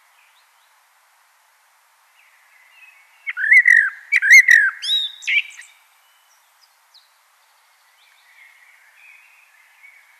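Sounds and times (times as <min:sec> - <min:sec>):
common blackbird singing: 0:03.3 - 0:05.7.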